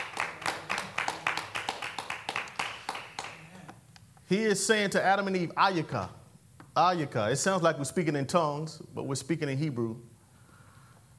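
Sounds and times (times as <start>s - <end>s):
audience clapping: 0.0s - 3.8s
speech: 4.3s - 6.2s, 6.8s - 10.1s.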